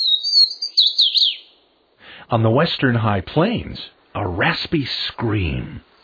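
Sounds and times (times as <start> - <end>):
Swainson's warbler song: 0.0 - 1.8
speech: 2.3 - 5.9.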